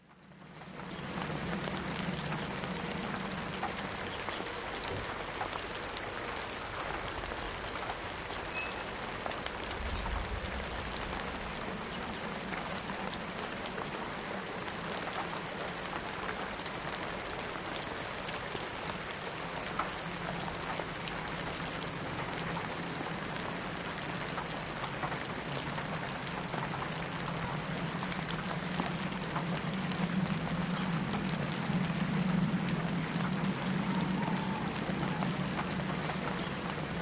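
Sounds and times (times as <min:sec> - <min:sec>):
steady rain falling: 0:00.0 - 0:36.9.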